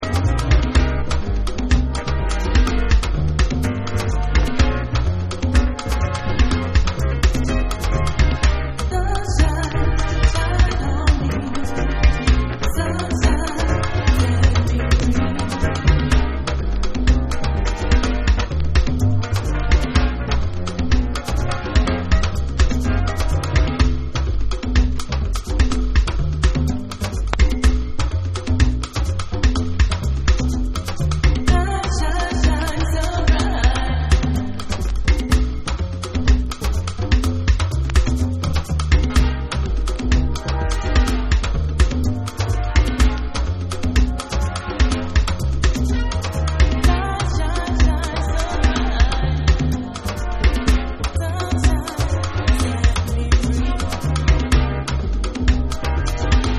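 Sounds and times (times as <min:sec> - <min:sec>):
bossa dub breakbeat: 0:00.0 - 0:56.5.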